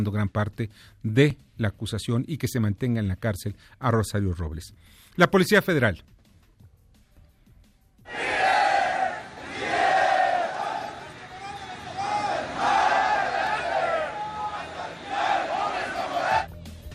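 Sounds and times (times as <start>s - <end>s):
speech: 0.0s - 6.2s
large crowd shouting in unison near an airport: 8.1s - 16.5s.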